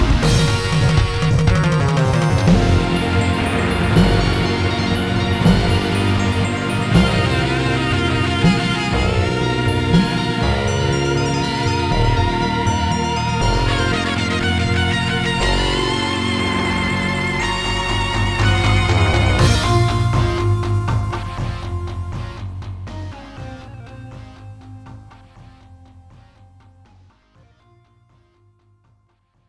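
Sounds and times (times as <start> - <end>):
flute: 0.2 - 22.6.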